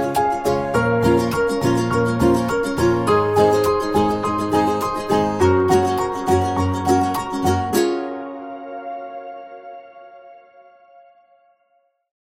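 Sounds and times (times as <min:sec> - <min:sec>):
calm commercial folk music: 0:00.0 - 0:09.9.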